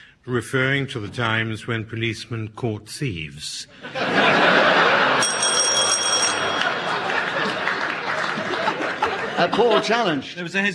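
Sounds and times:
speech: 0:00.2 - 0:05.0, 0:09.4 - 0:10.7
laughter: 0:03.8 - 0:10.4
audience applause: 0:06.4 - 0:09.7.

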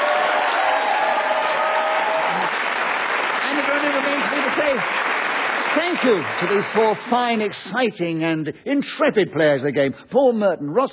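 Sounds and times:
cheers and whoops: 0:00.0 - 0:02.8
large studio audience applause: 0:00.0 - 0:08.0
speech: 0:05.8 - 0:10.9.

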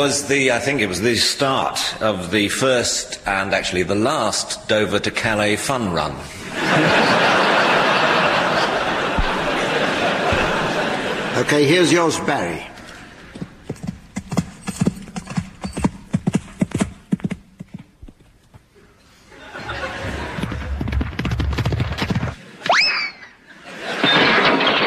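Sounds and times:
speech: 0:00.0 - 0:07.4, 0:11.4 - 0:12.8
laughter: 0:06.4 - 0:12.2, 0:19.3 - 0:20.8, 0:22.4 - 0:24.7
crowd noise: 0:06.4 - 0:13.6, 0:19.3 - 0:20.9
loud sustained crowd cheering: 0:06.6 - 0:12.0, 0:19.4 - 0:20.7
horse's hooves thudding during a show jumping round: 0:13.3 - 0:18.7, 0:20.3 - 0:22.4.

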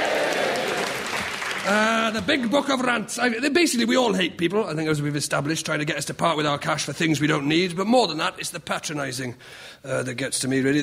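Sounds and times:
studio audience cheering and applauding: 0:00.0 - 0:02.8
speech: 0:01.7 - 0:10.8.

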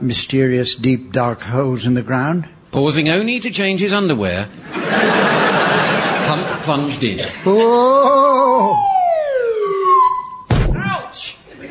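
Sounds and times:
speech: 0:00.0 - 0:08.9
laughter: 0:04.6 - 0:08.9, 0:11.5 - 0:11.7
swanee slide whistle being played: 0:08.7 - 0:10.5.

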